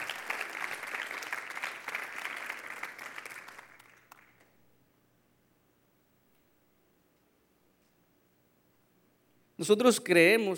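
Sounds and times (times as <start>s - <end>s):
audience applauding: 0.0s - 4.5s
speech: 9.6s - 10.5s.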